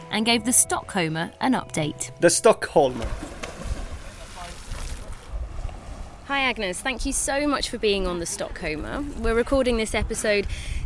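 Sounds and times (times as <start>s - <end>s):
speech: 0.1s - 3.2s, 6.3s - 10.8s
boats passing by on the water: 2.8s - 10.3s.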